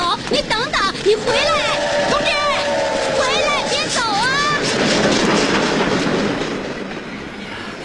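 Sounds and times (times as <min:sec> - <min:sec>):
speech: 0:00.1 - 0:02.2
train departing: 0:00.2 - 0:07.8.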